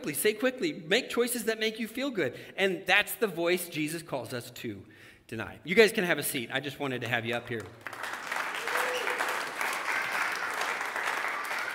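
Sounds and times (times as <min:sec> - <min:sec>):
speech: 0:00.0 - 0:08.2
audience round of applause: 0:07.8 - 0:11.7.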